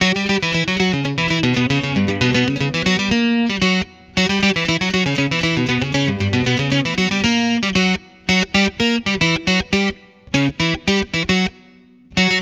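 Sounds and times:
guitar: 0.0s - 12.3s.

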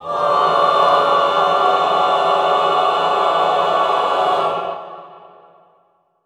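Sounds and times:
classical choir singing mid tone cluster: 0.0s - 5.8s.

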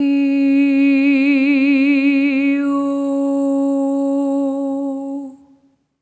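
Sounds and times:
soprano singing EH OH at C#4: 0.0s - 5.6s.

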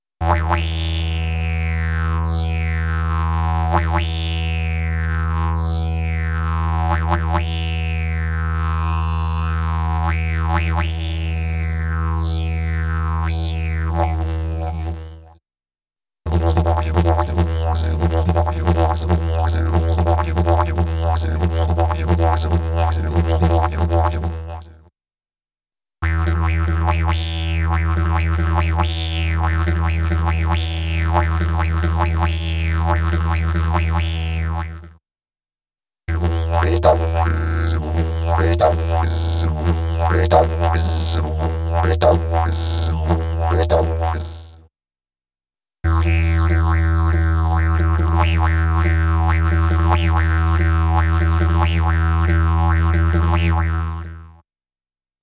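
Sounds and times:
didgeridoo: 0.2s - 15.2s, 16.3s - 24.8s, 26.0s - 34.9s, 36.1s - 44.6s, 45.9s - 54.4s.

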